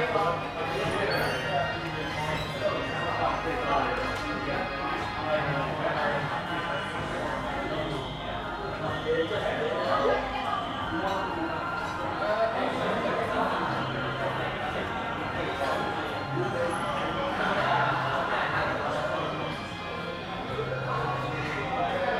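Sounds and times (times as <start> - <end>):
noisy cafe ambience in Phnom Penh Cambodia: 0.0 - 22.1.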